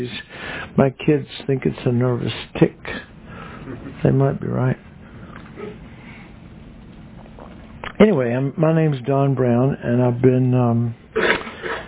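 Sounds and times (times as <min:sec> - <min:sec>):
speech: 0:00.0 - 0:03.0, 0:04.0 - 0:04.9, 0:08.0 - 0:11.0
man clearing throat: 0:11.2 - 0:11.8.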